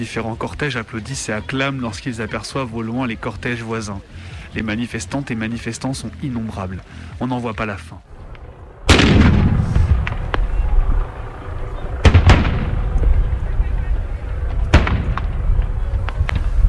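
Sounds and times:
speech: 0.0s - 8.1s
tear gas grenades being fired: 8.9s - 11.4s, 12.0s - 13.6s, 14.4s - 16.6s.

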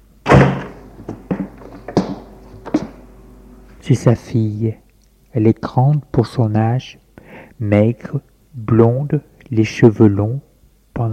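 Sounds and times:
door opening with a heavy thunk: 0.2s - 3.9s
speech: 3.9s - 7.0s, 7.6s - 11.1s.

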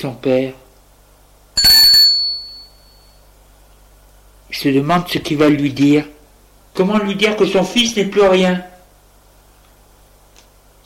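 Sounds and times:
speech: 0.0s - 0.6s, 4.5s - 6.2s, 6.8s - 8.7s
apartment doorbell ringing: 1.6s - 3.2s.

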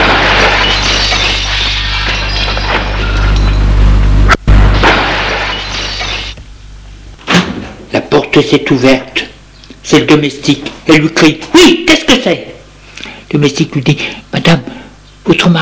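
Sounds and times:
vase thrown and smashing: 0.0s - 3.6s, 4.5s - 6.4s
speech: 8.4s - 9.3s, 9.9s - 12.5s, 13.3s - 15.5s.

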